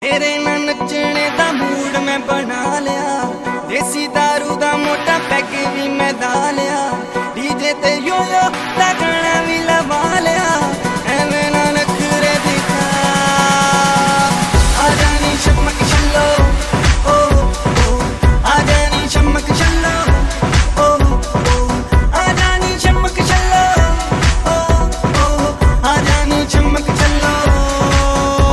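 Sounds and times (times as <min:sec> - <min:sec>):
Tamil DJ remix song: 0:00.0 - 0:28.5.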